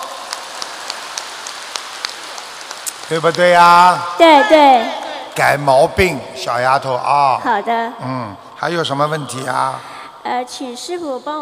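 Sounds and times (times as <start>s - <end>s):
applause: 0.0s - 4.4s
speech: 3.1s - 11.4s.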